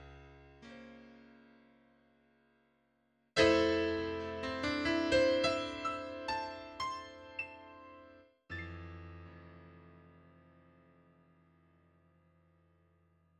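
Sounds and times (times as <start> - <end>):
piano triad: 3.4 - 10.5.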